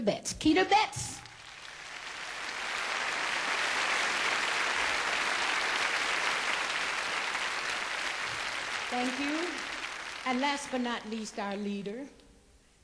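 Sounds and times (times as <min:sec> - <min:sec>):
speech: 0:00.0 - 0:01.2, 0:08.9 - 0:09.6, 0:10.2 - 0:12.2
audience applause for musician: 0:01.3 - 0:11.1.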